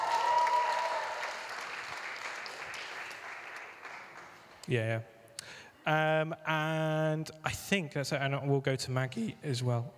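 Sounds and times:
audience round of applause: 0.0s - 4.4s
speech: 4.7s - 5.2s, 5.8s - 9.9s.

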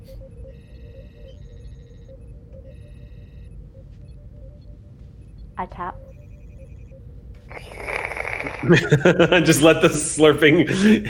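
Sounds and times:
communicator chirp: 0.0s - 8.6s
speech: 5.6s - 6.1s, 8.6s - 11.0s
laughter: 8.4s - 11.0s.

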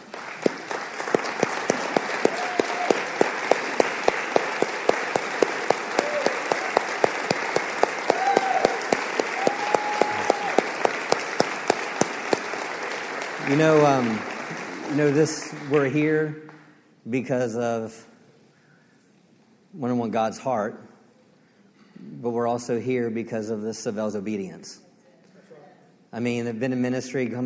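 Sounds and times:
church congregation standing and applauding: 0.0s - 16.7s
speech: 13.5s - 14.3s, 14.9s - 16.4s, 17.0s - 18.1s, 19.8s - 20.9s, 22.2s - 24.8s, 26.1s - 27.4s.

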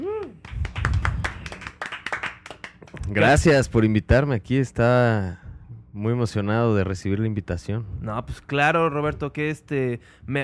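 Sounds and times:
audience applause: 0.4s - 2.8s
speech: 3.1s - 5.4s, 6.0s - 10.4s.

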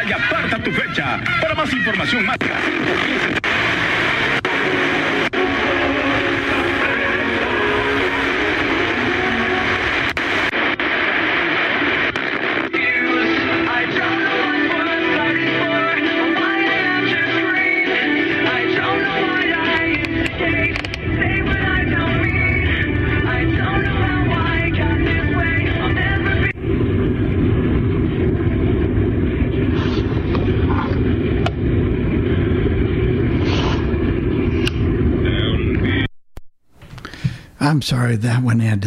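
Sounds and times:
radio band scan across stations: 0.0s - 36.1s
speech: 0.1s - 3.8s, 37.8s - 38.8s.

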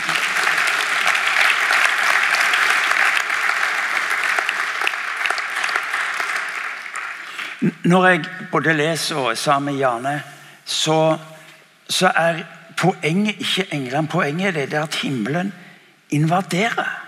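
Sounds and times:
audience applause: 0.0s - 7.6s
speech: 7.8s - 11.3s, 11.9s - 17.0s.

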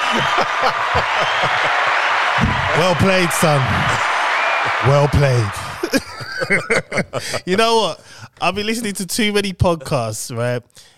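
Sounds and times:
clapping sound effect: 0.0s - 6.2s
laughter: 0.0s - 8.0s
speech: 0.1s - 10.9s.

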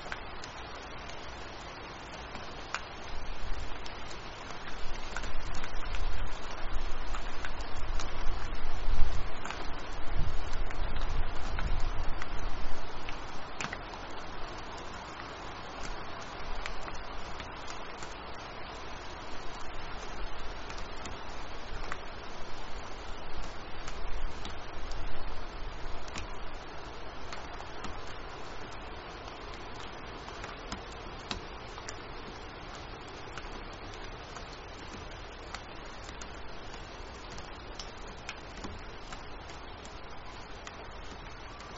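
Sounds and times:
low rumbling wind gusts: 0.0s - 30.0s
rain: 0.0s - 41.7s.

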